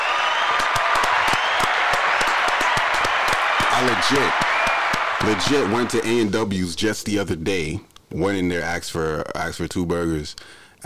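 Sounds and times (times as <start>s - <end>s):
applause: 0.0s - 6.2s
speech: 3.8s - 4.5s, 5.2s - 10.8s.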